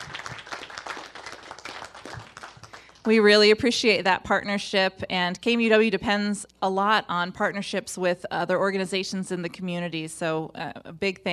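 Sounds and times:
audience applause: 0.0s - 3.1s
speech: 3.0s - 11.3s.

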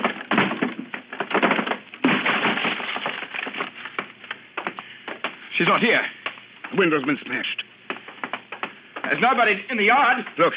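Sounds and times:
wooden door forced and broken open: 0.0s - 4.7s
speech: 5.6s - 7.7s, 9.0s - 10.5s.

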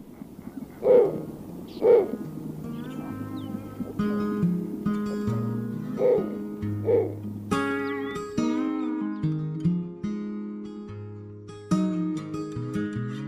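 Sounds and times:
snowy owl hooting: 0.0s - 8.5s
sustained musical chords: 1.2s - 13.1s.

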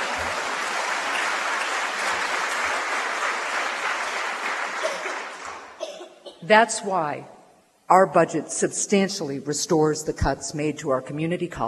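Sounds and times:
crowd applause: 0.0s - 5.9s
speech: 6.5s - 7.3s, 7.9s - 11.6s.

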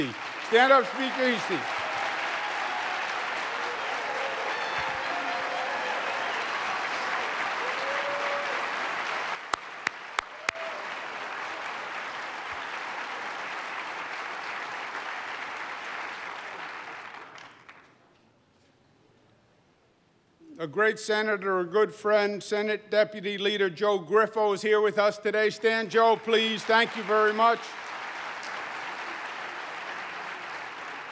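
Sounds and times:
speech: 0.0s - 1.8s, 20.6s - 27.8s
round of applause: 0.0s - 18.0s, 26.0s - 31.1s.

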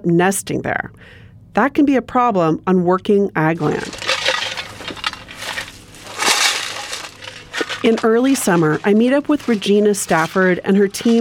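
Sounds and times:
speech: 0.0s - 4.0s, 7.8s - 11.1s
tin cans filled with gravel rattling: 3.6s - 11.1s.

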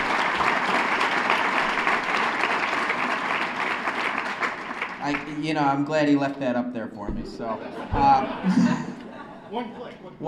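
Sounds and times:
audience applause: 0.0s - 5.4s
speech: 5.1s - 8.9s, 9.5s - 10.2s
laughter: 7.4s - 10.2s.

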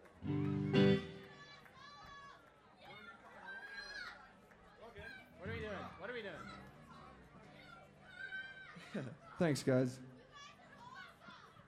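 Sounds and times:
crowd of children shouting and cheering: 0.2s - 4.3s, 6.4s - 9.3s, 10.3s - 11.6s
speech: 8.9s - 10.1s.

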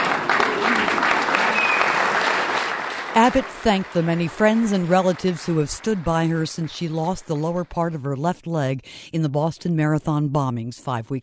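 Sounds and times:
party guests applauding: 0.0s - 7.4s
speech: 3.2s - 11.2s.

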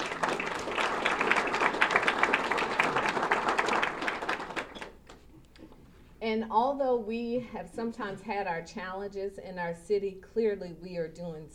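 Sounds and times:
crowd audience clapping: 0.0s - 5.2s
speech: 6.4s - 11.5s.

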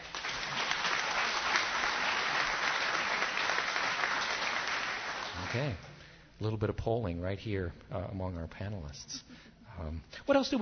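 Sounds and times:
audience clapping: 0.0s - 5.9s
speech: 5.5s - 10.6s.

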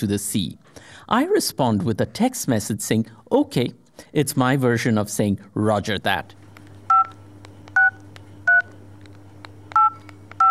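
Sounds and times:
speech: 0.0s - 6.4s
two-tone phone keypad beeps: 6.9s - 7.1s, 7.8s - 8.7s, 9.8s - 10.4s.

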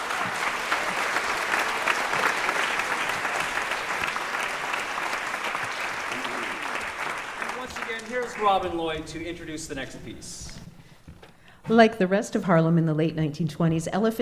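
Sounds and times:
audience applause welcoming a singer from New Orleans: 0.0s - 10.0s
speech: 8.2s - 10.5s, 11.7s - 14.1s.

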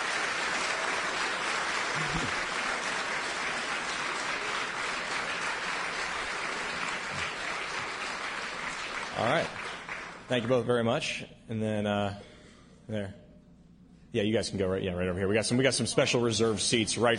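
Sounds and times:
audience applause: 0.0s - 10.5s
speech: 10.3s - 12.3s, 12.9s - 13.2s, 14.1s - 17.1s.

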